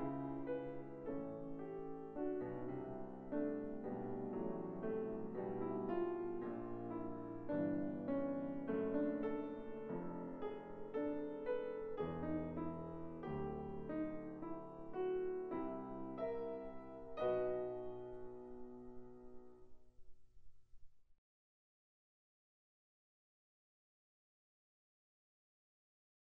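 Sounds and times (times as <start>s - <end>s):
piano sarabande in B minor: 0.0s - 20.0s.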